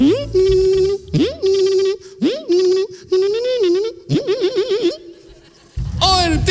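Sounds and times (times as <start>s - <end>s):
voice imitating a slot machine: 0.0s - 5.2s.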